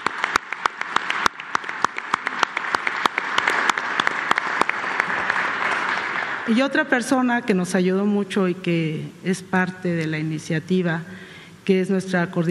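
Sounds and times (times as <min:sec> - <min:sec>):
crowd clapping: 0:00.0 - 0:06.6
speech: 0:06.5 - 0:12.4.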